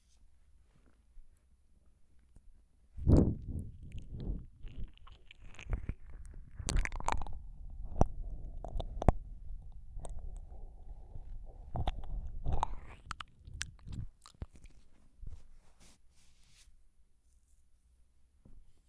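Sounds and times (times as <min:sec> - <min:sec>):
quiet ear licking ASMR: 0:03.0 - 0:16.0.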